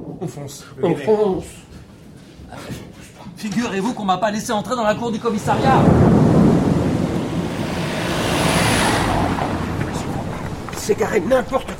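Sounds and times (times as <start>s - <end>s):
speech: 0.2s - 1.8s, 2.5s - 6.4s, 10.9s - 11.7s
deep rumble: 5.2s - 11.7s
steady rain: 5.2s - 11.7s.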